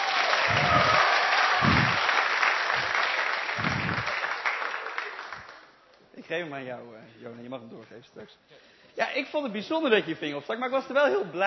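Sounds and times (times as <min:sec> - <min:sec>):
audience applause: 0:00.0 - 0:05.7
speech: 0:06.3 - 0:11.4.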